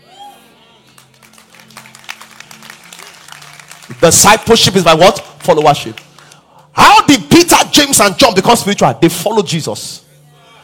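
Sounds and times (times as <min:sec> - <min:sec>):
audience clapping: 0:00.9 - 0:06.6
speech: 0:03.9 - 0:06.0, 0:06.8 - 0:10.0.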